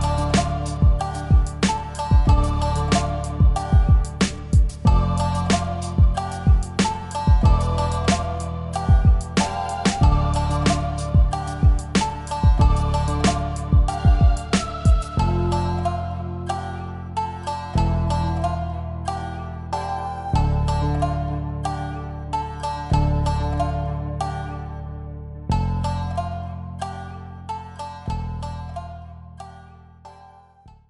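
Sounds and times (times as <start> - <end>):
chill Asian style beat: 0.0 - 24.6.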